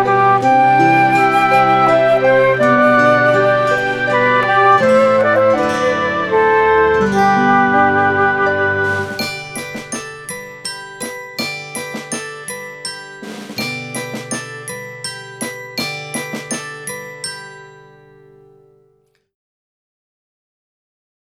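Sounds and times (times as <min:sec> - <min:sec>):
flute: 0:00.0 - 0:11.2.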